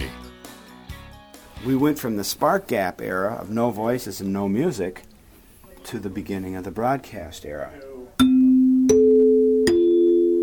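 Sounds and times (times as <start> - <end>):
speech: 1.6 - 5.1, 5.9 - 7.9
broadcast chime notes struck by hand with a mallet: 8.2 - 10.4.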